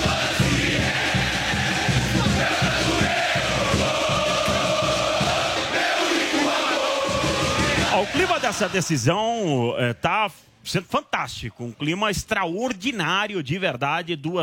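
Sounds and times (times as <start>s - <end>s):
football supporters chanting and roaring in unison: 0.0s - 9.5s
speech: 8.0s - 14.4s.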